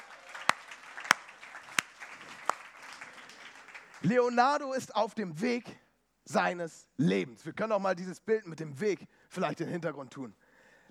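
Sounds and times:
audience applause: 0.0 - 4.0
speech: 4.0 - 10.4.

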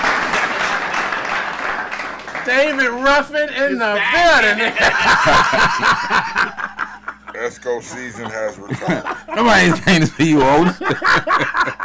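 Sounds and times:
many hands clapping: 0.0 - 3.2
speech: 2.5 - 6.7, 7.4 - 11.8
laughter: 3.9 - 11.8.

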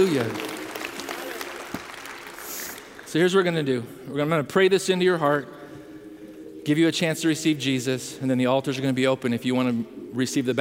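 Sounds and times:
speech: 0.0 - 0.5, 3.1 - 5.6, 6.6 - 10.6
audience clapping: 0.0 - 3.8.

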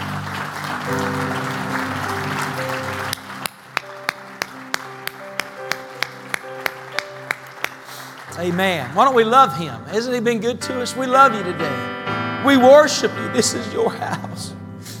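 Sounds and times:
crowd clapping hands in time with music: 0.0 - 9.8
sustained keyboard chords: 0.0 - 14.9
speech: 8.4 - 14.6.

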